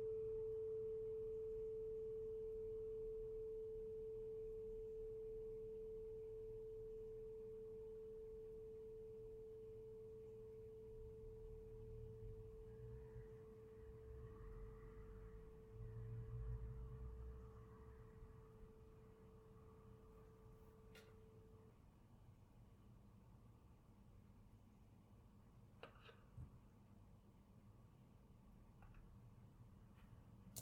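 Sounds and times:
tuning fork tone: 0.0 - 21.7.

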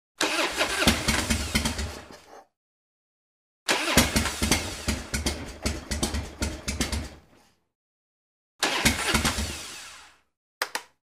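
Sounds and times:
car engine failing to start: 0.2 - 2.1, 3.7 - 6.1, 8.6 - 10.0.

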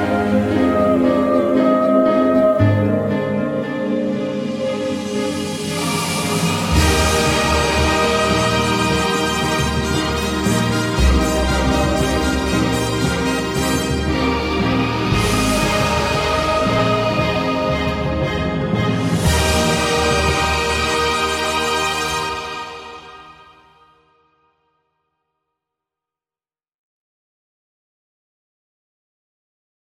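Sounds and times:
bewitching spooky singing: 0.0 - 23.5.

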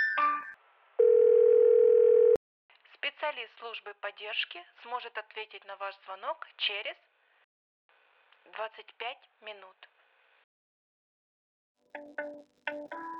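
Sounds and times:
telephone tone while waiting for operator answer: 1.0 - 2.4.

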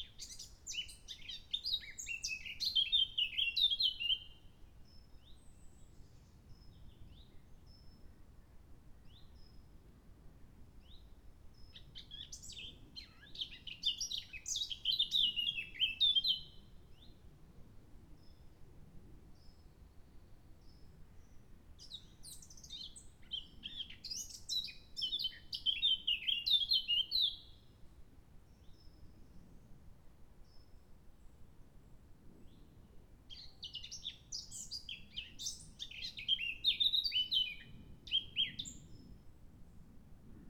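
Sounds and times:
blackcap singing: 0.0 - 4.4, 11.8 - 16.6, 21.8 - 27.5, 33.3 - 38.8.

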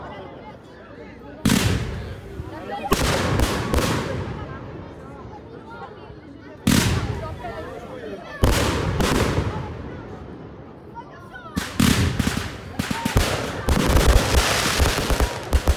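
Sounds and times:
festive fireworks: 1.4 - 4.6, 6.6 - 7.7, 8.4 - 10.2, 11.6 - 15.7.

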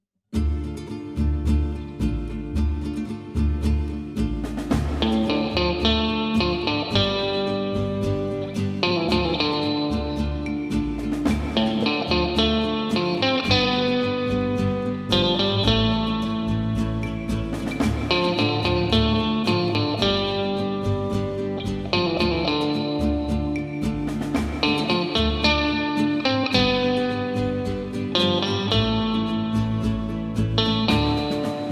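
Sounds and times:
western music: 0.4 - 31.7.

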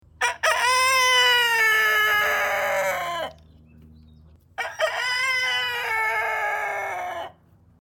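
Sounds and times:
rooster crowing: 0.2 - 3.4, 4.6 - 7.4.

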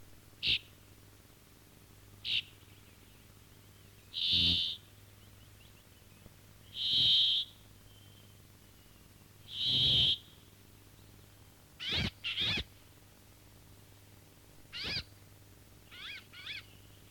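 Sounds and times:
finch: 0.4 - 0.7, 2.2 - 2.6, 4.1 - 4.8, 6.7 - 7.6, 9.5 - 10.4, 11.8 - 12.7, 14.7 - 15.1, 15.9 - 16.9.

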